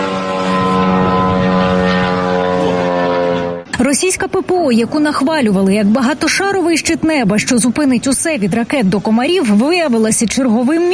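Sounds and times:
drone propellers buzzing overhead: 0.0 - 5.0
speech: 3.8 - 10.9.

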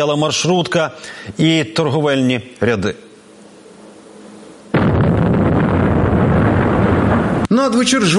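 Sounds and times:
speech: 0.0 - 3.1, 7.6 - 8.1
Russian kamikaze drone falling and exploding: 4.7 - 7.5.

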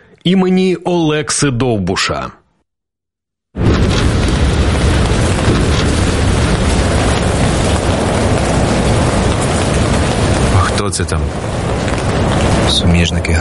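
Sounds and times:
speech: 0.2 - 2.4, 11.0 - 11.7, 12.7 - 13.4
heavy artillery fire rumbling: 3.6 - 13.4.

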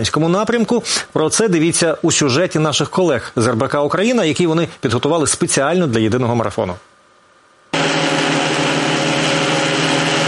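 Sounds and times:
speech: 0.0 - 6.9
drone humming in darkness: 7.8 - 10.2.

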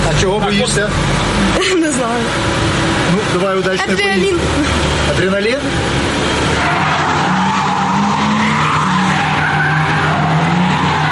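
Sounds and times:
car engine roaring: 0.0 - 11.0
car tires squealing while skidding during extreme ride: 0.0 - 11.0
speech: 0.2 - 6.7.

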